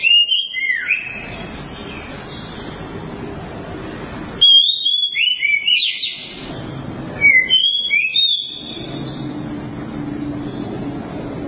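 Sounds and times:
Oriental magpie-robin song: 0.0 - 2.8, 4.4 - 6.5, 7.2 - 10.7.

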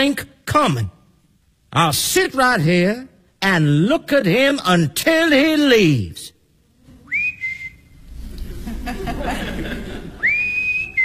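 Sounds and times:
speech: 0.0 - 1.0, 1.7 - 6.4
person whistling outside: 7.0 - 8.0, 10.2 - 11.0
laughter: 8.3 - 11.0.

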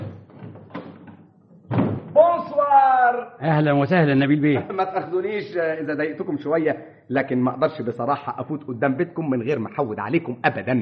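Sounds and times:
door opening for a visitor: 0.0 - 2.3
speech: 2.5 - 10.7
laughter: 4.4 - 5.6.

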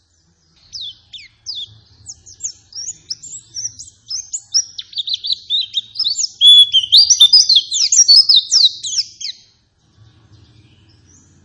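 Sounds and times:
white-eye song: 0.6 - 9.5.

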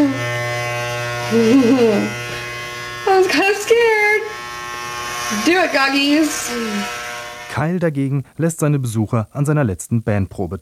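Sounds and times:
electric shaver shaving a head bald: 0.0 - 7.8
speech: 1.3 - 2.2, 3.2 - 4.3, 5.3 - 7.0, 7.6 - 10.5.

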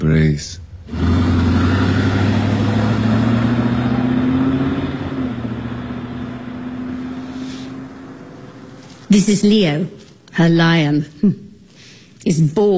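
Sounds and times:
speech: 0.0 - 1.1, 9.1 - 11.4, 12.2 - 12.7
van engine humming as it pulls away and drives on: 0.0 - 9.2.

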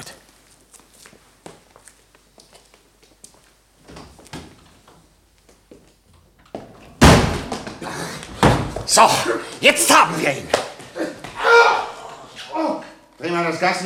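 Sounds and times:
light shuffling footsteps: 0.0 - 6.6
door with frosted glass slamming shut: 7.0 - 7.7, 8.4 - 8.9
speech: 8.9 - 10.7, 13.2 - 13.8.

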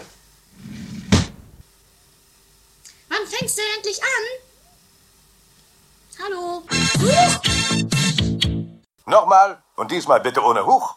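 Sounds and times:
studio door opening with a low rumbling scrape: 0.5 - 1.5
speech: 3.3 - 4.5, 6.2 - 7.8, 9.1 - 10.9.

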